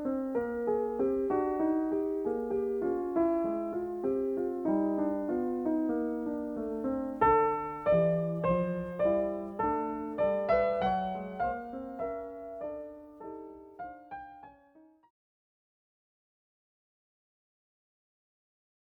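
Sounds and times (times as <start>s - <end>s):
piano sonata: 0.0s - 15.1s.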